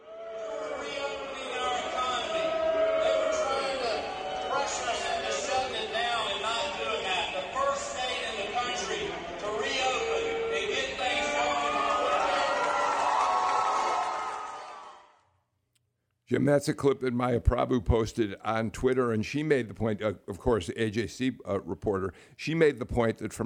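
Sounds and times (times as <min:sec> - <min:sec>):
large convention crowd cheering and booing: 0:00.0 - 0:15.2
speech: 0:16.3 - 0:23.4.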